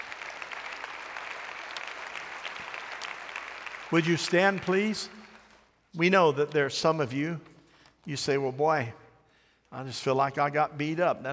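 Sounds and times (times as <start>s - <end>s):
audience applause: 0.0s - 5.6s
speech: 3.9s - 5.2s, 6.0s - 9.0s, 9.7s - 11.3s.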